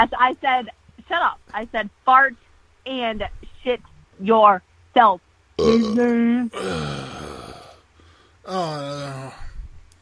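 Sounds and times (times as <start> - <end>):
speech: 0.0 - 7.3, 8.5 - 9.4
burp: 5.6 - 7.8, 8.5 - 9.5.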